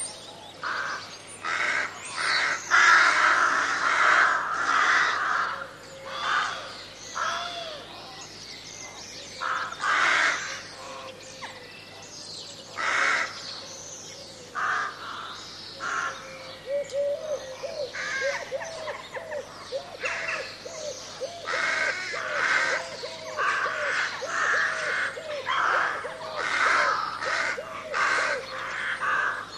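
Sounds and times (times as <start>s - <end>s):
crows cawing: 0.6s - 7.8s, 9.4s - 11.2s, 12.8s - 13.4s, 14.6s - 29.5s.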